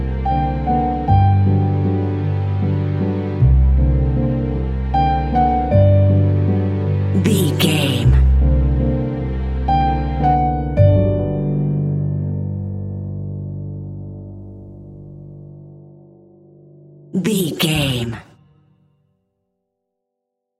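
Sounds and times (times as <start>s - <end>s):
double bass: 0.0s - 7.2s, 8.0s - 15.8s
romantic longing strings: 0.0s - 11.9s
romantic longing piano: 0.0s - 18.8s.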